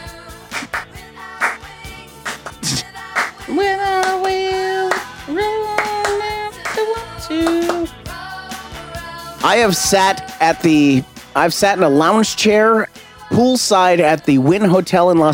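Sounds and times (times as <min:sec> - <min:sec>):
song with clapping: 0:00.4 - 0:08.8
speech: 0:09.5 - 0:15.3.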